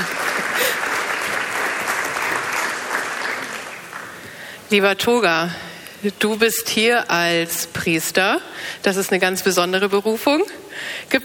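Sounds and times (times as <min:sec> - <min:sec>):
audience applause: 0:00.0 - 0:04.5
speech: 0:04.7 - 0:11.2.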